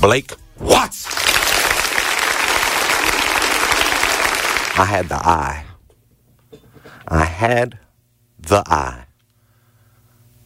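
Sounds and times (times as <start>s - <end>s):
speech: 0.0s - 1.2s, 4.8s - 5.7s, 7.1s - 7.8s, 8.4s - 9.1s
round of applause: 1.0s - 5.2s.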